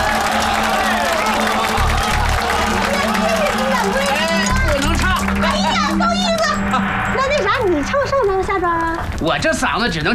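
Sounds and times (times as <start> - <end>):
crowd applause and cheering: 0.0 - 9.2
speech: 9.2 - 10.1.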